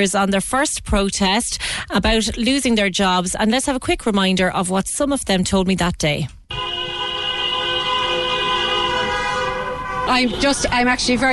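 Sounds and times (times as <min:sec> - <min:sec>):
speech: 0:00.0 - 0:06.4, 0:10.1 - 0:11.3
low traffic rumble: 0:04.5 - 0:11.3
taxi and bus horns blaring: 0:06.5 - 0:11.3.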